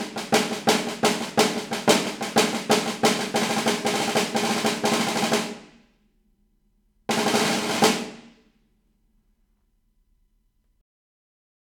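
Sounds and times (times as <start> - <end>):
snare drum at 120 bpm: 0.0 - 5.8, 7.1 - 8.5.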